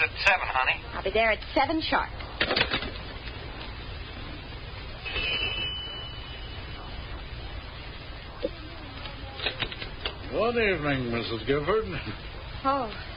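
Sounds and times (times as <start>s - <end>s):
speech: 0.0s - 2.8s, 10.4s - 13.1s
doorbell ringing: 5.0s - 6.6s.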